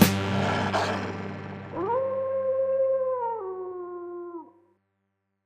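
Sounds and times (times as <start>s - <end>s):
golden jackal howling: 0.2s - 4.5s.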